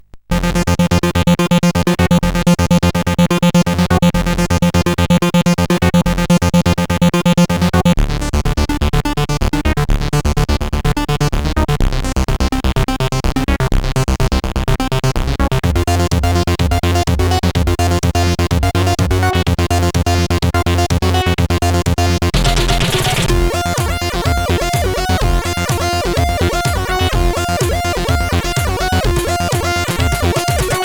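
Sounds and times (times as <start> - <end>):
techno on CSG8580R5 SID chip: 0.3 - 30.8.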